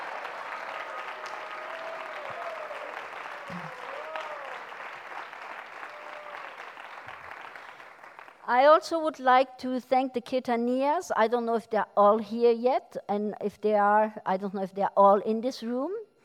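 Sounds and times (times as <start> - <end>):
audience applause: 0.0 - 8.4
speech: 8.5 - 16.0.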